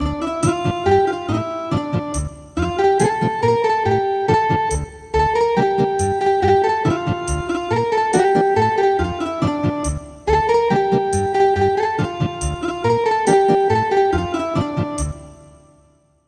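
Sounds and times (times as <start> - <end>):
ethnic guitar music: 0.0 - 15.8.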